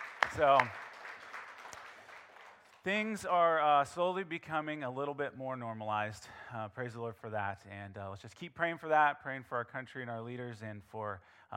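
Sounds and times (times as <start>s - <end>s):
audience clapping: 0.0s - 3.6s
speech: 0.4s - 0.8s, 2.8s - 11.5s.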